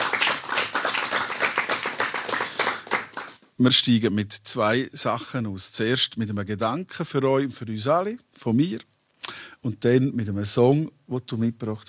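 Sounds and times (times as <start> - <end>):
audience applause: 0.0 - 3.4
speech: 3.6 - 8.9, 9.6 - 11.8.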